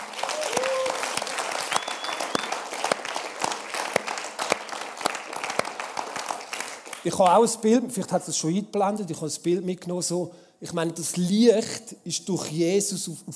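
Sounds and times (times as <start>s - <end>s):
audience applause: 0.0s - 7.1s
speech: 7.0s - 13.3s.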